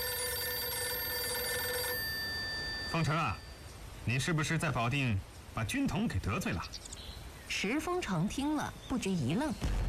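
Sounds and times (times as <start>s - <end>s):
telephone ringing with a bright electronic bell tone: 0.0s - 3.7s
speech: 3.0s - 6.9s, 7.5s - 9.8s.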